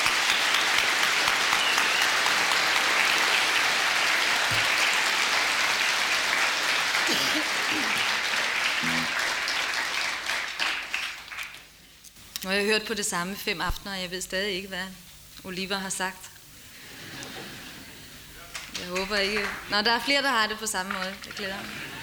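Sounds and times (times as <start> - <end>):
audience applause welcoming a performer from Denmark: 0.0 - 11.6, 18.4 - 22.0
speech: 12.4 - 16.3, 18.8 - 21.9.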